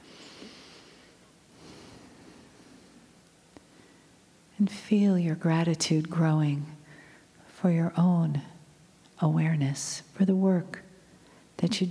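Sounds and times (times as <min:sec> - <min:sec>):
faint airy nasal inhale during a guided meditation: 0:00.0 - 0:03.1
low hiss: 0:00.0 - 0:11.9
speech: 0:04.6 - 0:06.8, 0:07.6 - 0:08.5, 0:09.2 - 0:10.8, 0:11.6 - 0:11.9.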